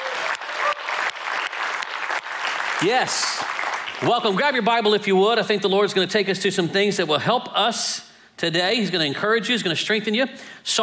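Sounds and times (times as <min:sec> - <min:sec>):
audience applause: 0:00.0 - 0:04.4
speech: 0:02.8 - 0:10.8.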